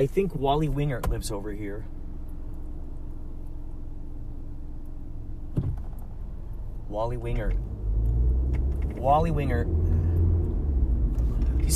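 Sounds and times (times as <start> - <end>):
speech: 0.0 - 2.0, 6.9 - 7.7, 9.0 - 9.8
car driving: 0.0 - 11.7
brief thump: 5.5 - 6.1.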